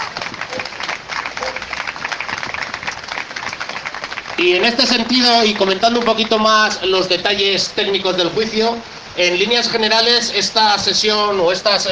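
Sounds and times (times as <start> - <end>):
audience applause: 0.0 - 6.8
speech: 4.4 - 11.9.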